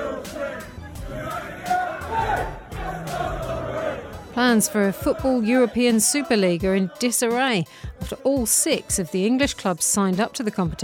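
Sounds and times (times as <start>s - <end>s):
football crowd chanting outside stadium: 0.0s - 8.6s
speech: 4.4s - 10.8s.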